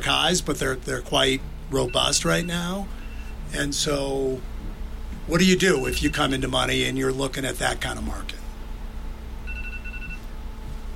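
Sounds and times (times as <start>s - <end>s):
speech: 0.0s - 4.5s, 5.3s - 8.3s
low steady hum: 0.0s - 10.9s
phone alarm beeping: 1.8s - 3.4s, 5.7s - 6.3s, 9.4s - 10.3s.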